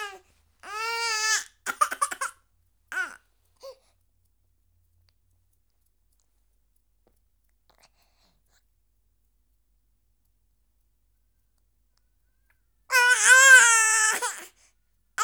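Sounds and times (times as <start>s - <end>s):
month-old baby girl crying in a temper tantrum: 0.0s - 2.3s, 2.9s - 3.2s, 12.9s - 14.5s.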